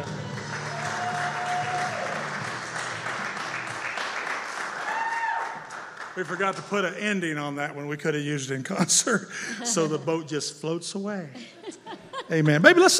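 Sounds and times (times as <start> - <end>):
audience applauding: 0.0 - 7.3
speech: 6.2 - 11.6, 12.3 - 12.9
laughter: 8.7 - 10.3, 11.3 - 12.9.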